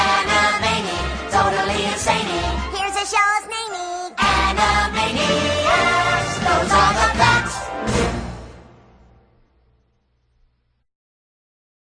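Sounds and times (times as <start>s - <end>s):
cartoon song: 0.0s - 8.2s.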